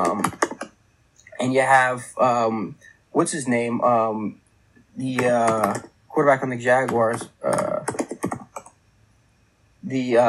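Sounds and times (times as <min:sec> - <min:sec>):
typing on a computer keyboard: 0:00.0 - 0:00.7, 0:05.0 - 0:05.9, 0:06.7 - 0:08.7
speech: 0:01.4 - 0:04.4, 0:05.0 - 0:08.0, 0:09.9 - 0:10.2.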